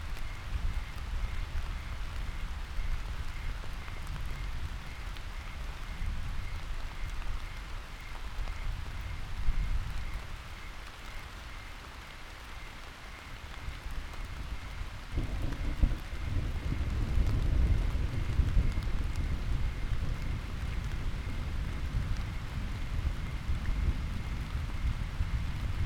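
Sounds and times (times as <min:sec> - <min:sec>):
crickets chirping: 0:00.2 - 0:25.5
thunder: 0:15.1 - 0:25.8.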